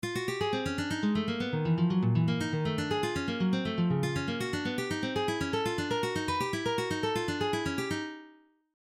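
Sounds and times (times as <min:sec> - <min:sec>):
fast picking: 0:00.0 - 0:08.0.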